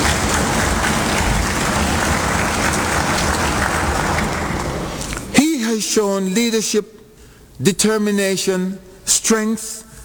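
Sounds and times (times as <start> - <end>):
audience applause: 0.0 - 5.3
speech: 6.0 - 7.0, 7.6 - 9.8.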